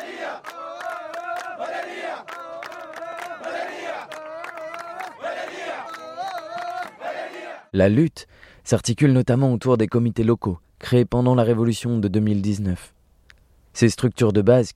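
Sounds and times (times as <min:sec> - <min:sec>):
protest crowd chanting slogans: 0:00.0 - 0:07.7
speech: 0:07.8 - 0:13.0, 0:13.8 - 0:14.7.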